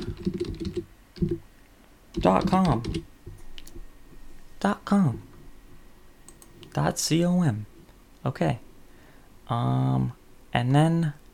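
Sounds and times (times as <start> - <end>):
typing on a computer keyboard: 0.0 - 1.4, 2.2 - 3.0
speech: 2.2 - 3.1, 4.6 - 5.3, 6.8 - 8.6, 9.5 - 11.2.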